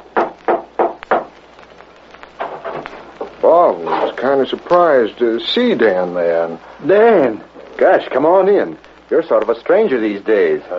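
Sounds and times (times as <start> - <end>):
knocking on a wooden door: 0.1 - 1.3
speech: 3.4 - 10.7.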